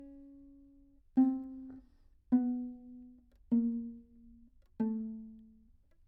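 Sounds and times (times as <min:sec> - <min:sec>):
tenor viol pizzicato chromatic descending notes: 0:01.2 - 0:05.5.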